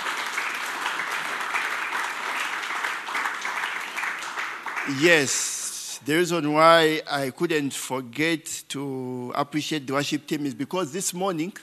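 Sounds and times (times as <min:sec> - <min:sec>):
audience applauding the worship team: 0:00.0 - 0:05.4
speech: 0:04.9 - 0:11.6.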